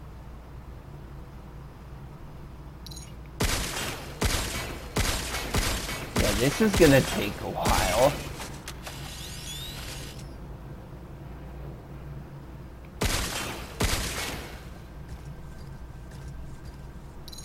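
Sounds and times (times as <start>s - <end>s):
low hum: 0.0s - 17.4s
video game gunshots at a creature: 3.4s - 10.2s, 13.0s - 14.8s
speech: 6.4s - 8.3s.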